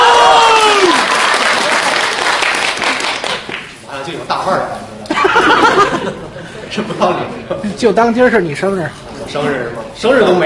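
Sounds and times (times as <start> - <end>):
audience applause at a Chinese crosstalk xiangsheng comedy performance: 0.6 - 3.8
laughter: 5.0 - 7.8
speech: 7.0 - 10.4.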